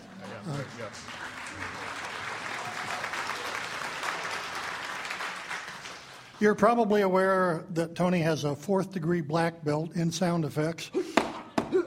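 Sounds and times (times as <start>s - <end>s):
audience applause: 0.0s - 6.4s
speech: 6.4s - 11.1s.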